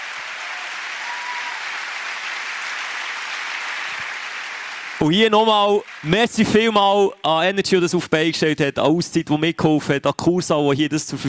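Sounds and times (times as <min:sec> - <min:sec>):
audience applause: 0:00.0 - 0:06.8
speech: 0:05.0 - 0:11.2.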